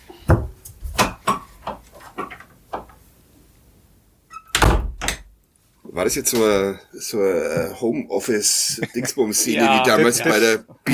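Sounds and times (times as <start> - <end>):
door closing: 4.3 - 5.3
speech: 6.0 - 10.9
laughter: 8.4 - 10.9.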